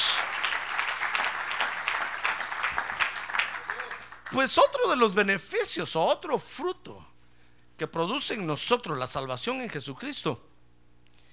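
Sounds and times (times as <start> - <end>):
audience applauding: 0.0 - 4.4
speech: 4.3 - 7.1, 7.8 - 10.5.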